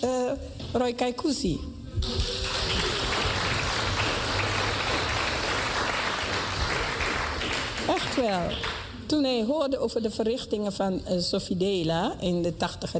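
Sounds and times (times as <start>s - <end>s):
speech: 0.0s - 2.4s, 7.9s - 12.9s
audience applause: 2.0s - 9.0s.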